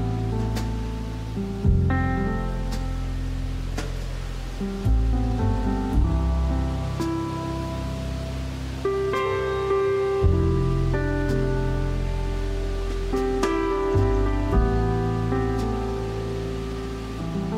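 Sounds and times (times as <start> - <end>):
faint steady rustling hiss: 0.0 - 17.5
soft piano chords with deep bass line: 0.0 - 17.5.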